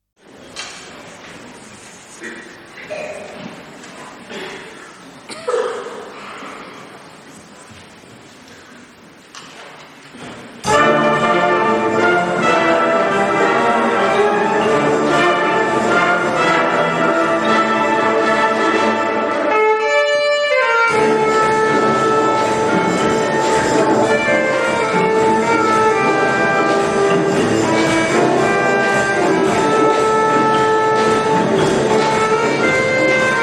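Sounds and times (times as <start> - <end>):
orchestra playing in a concert hall: 10.6 - 33.4.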